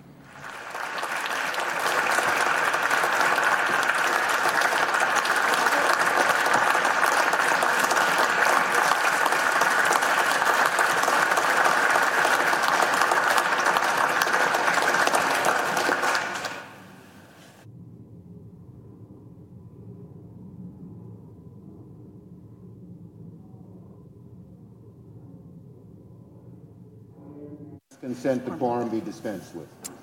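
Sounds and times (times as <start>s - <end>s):
large crowd applause on the Senate floor: 0.0s - 17.1s
speech: 28.2s - 29.9s.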